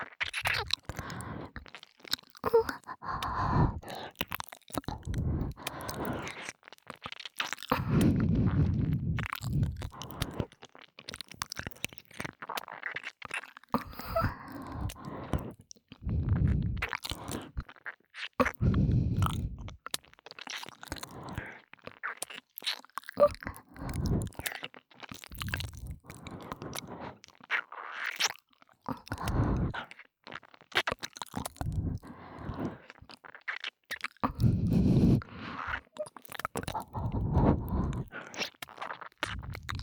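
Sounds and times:
ear licking: 0:00.0 - 0:13.2, 0:13.8 - 0:39.8
heavy breathing: 0:02.5 - 0:04.2, 0:04.8 - 0:06.4, 0:07.7 - 0:10.5, 0:13.8 - 0:17.6, 0:18.5 - 0:19.8, 0:26.1 - 0:27.2, 0:28.9 - 0:29.8, 0:31.6 - 0:32.9, 0:34.2 - 0:38.5, 0:39.2 - 0:39.8.

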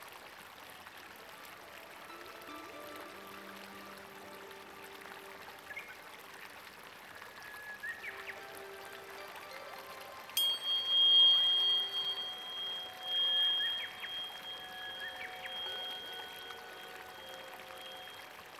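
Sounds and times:
tuning fork healing tones 741 and 528: 0:08.0 - 0:18.5.

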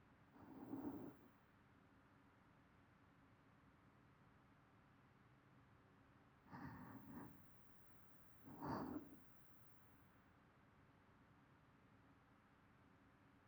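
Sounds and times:
person breathing in sleep loop: 0:00.4 - 0:01.2, 0:06.5 - 0:07.4, 0:08.5 - 0:09.2.

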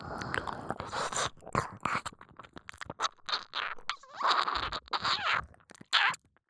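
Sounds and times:
ear licking: 0:00.0 - 0:06.2
kissing sounds: 0:03.3 - 0:06.2.

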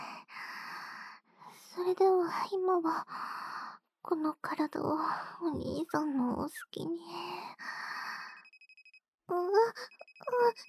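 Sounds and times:
speech: 0:01.8 - 0:03.4, 0:04.0 - 0:07.7, 0:09.3 - 0:10.6
mobile phone ringing: 0:08.4 - 0:09.0, 0:09.8 - 0:10.6.

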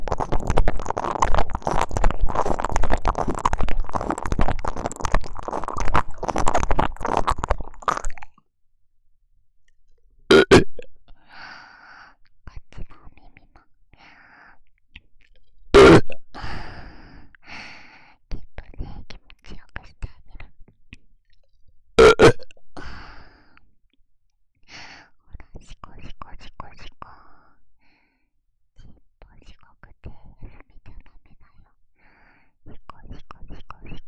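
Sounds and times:
burping: 0:00.0 - 0:08.3, 0:10.3 - 0:10.9, 0:15.8 - 0:16.2, 0:22.0 - 0:22.5.

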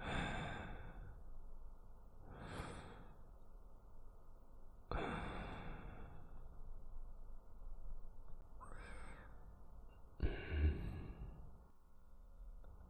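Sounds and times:
person breathing in sleep: 0:00.0 - 0:01.3, 0:02.2 - 0:03.3, 0:04.9 - 0:06.4, 0:08.6 - 0:09.6, 0:10.2 - 0:11.6.

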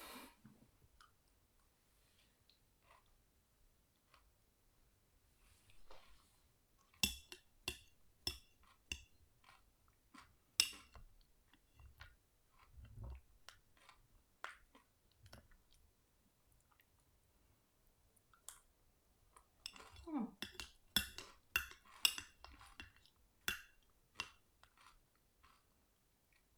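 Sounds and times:
spoon clinking against a dish: 0:07.0 - 0:09.2, 0:10.6 - 0:11.9, 0:19.6 - 0:24.4.

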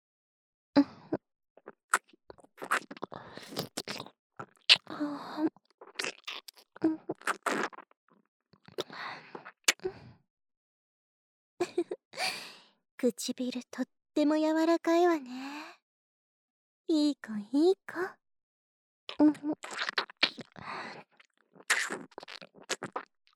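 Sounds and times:
speech: 0:00.8 - 0:01.0, 0:13.0 - 0:15.5, 0:16.9 - 0:18.2, 0:19.2 - 0:20.0
wet chewing and eating mouth sounds in a roleplay: 0:01.6 - 0:05.0, 0:05.8 - 0:07.9, 0:19.1 - 0:23.3.

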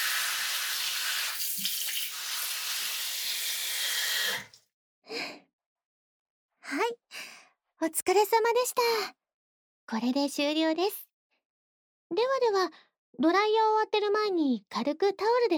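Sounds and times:
running water rinsing hair at the back of the head during a hair wash: 0:00.0 - 0:04.6
soft splashes and drips: 0:00.0 - 0:04.6
speech: 0:07.8 - 0:09.2, 0:09.9 - 0:11.1, 0:12.1 - 0:15.5.

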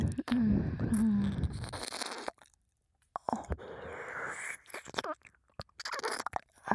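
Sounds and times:
ear licking on left and right simultaneously: 0:00.0 - 0:02.6, 0:04.2 - 0:06.6.

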